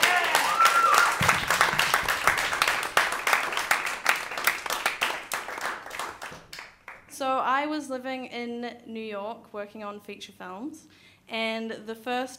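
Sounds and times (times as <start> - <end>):
audience applause: 0.0 - 7.0
speech: 7.7 - 12.3.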